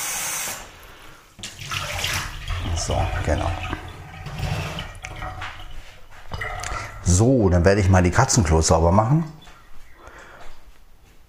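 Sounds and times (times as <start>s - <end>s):
cup rinsed under running tap: 1.4s - 7.3s
speech: 2.8s - 3.8s, 7.1s - 9.4s.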